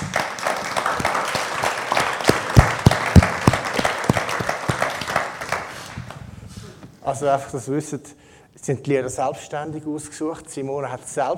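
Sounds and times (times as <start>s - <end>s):
audience applause: 0.0s - 6.2s
speech: 7.1s - 11.3s.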